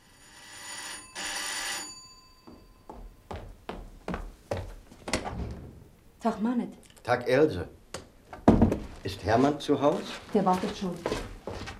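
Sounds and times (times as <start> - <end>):
doorbell ringing: 0.0 - 3.2
speech: 6.2 - 7.8, 9.2 - 11.3.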